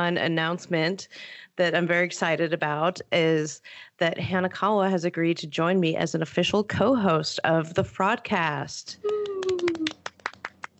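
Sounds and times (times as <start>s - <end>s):
speech: 0.0s - 9.2s
light hand claps: 9.0s - 10.7s.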